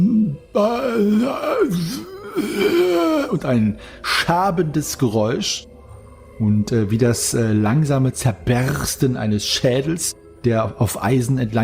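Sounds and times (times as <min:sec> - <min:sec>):
person moaning: 0:00.0 - 0:03.7
speech: 0:00.5 - 0:05.7, 0:06.4 - 0:11.6.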